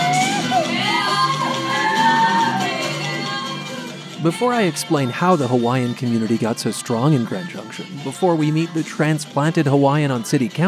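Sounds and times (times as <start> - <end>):
audience yeehaws and whoops at a Polynesian dance event: 0.0 - 4.4
speech: 4.2 - 10.6.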